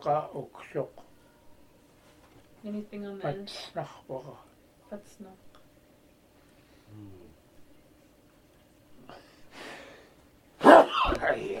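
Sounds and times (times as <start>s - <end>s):
speech: 0.0s - 1.0s, 2.6s - 5.4s, 6.9s - 7.3s, 11.2s - 11.5s
person sneezing: 10.6s - 11.2s.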